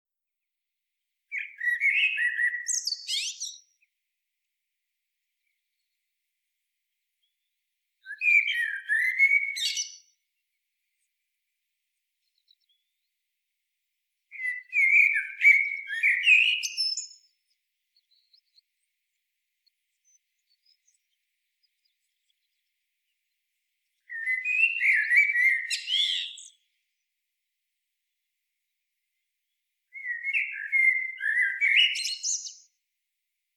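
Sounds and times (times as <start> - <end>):
Eurasian blackbird song: 1.0 - 33.0.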